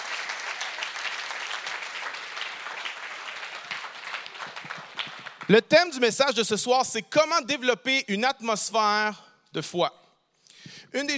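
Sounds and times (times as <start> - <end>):
audience applause: 0.0 - 5.6
speech: 5.5 - 10.0, 10.9 - 11.1.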